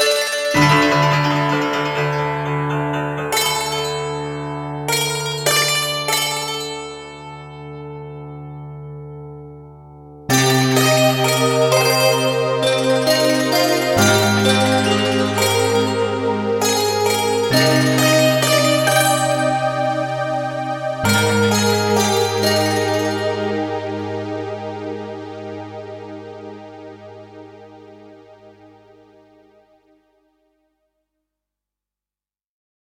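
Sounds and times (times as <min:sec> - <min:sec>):
piano harp fusion: 0:00.0 - 0:07.4, 0:10.3 - 0:28.8.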